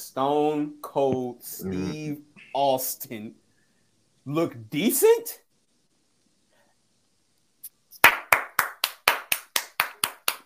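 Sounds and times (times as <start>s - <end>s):
speech: 0.2s - 3.4s, 4.2s - 5.4s
rhythmic clapping: 7.9s - 10.4s.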